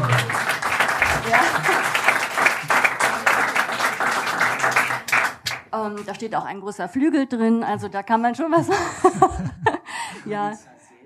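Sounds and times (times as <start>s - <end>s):
laughter: 0.0s - 2.9s, 8.5s - 10.2s
audience applause: 0.0s - 5.7s
speech: 5.8s - 10.7s.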